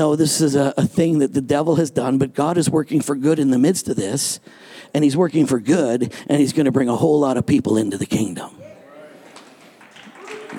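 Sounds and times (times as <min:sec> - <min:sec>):
speech: 0:00.0 - 0:08.6
scattered hand claps: 0:09.3 - 0:10.5.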